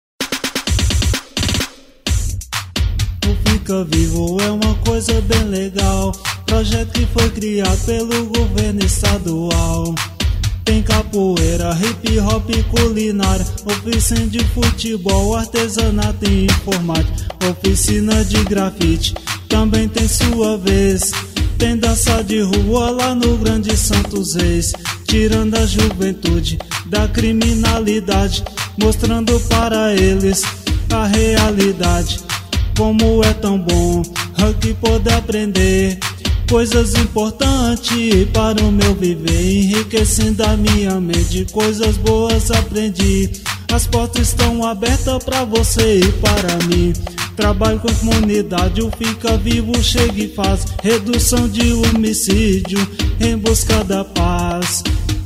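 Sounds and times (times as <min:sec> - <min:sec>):
funk music: 0:00.2 - 0:55.2.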